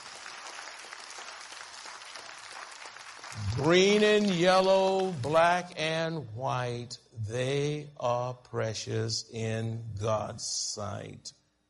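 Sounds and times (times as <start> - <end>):
audience applause: 0.0 - 5.7
speech: 3.5 - 11.4.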